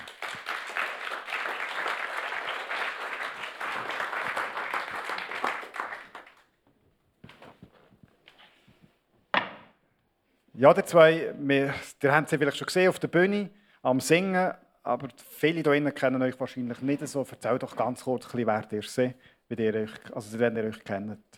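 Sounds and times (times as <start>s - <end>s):
audience applause: 0.0s - 6.5s
speech: 10.6s - 21.3s.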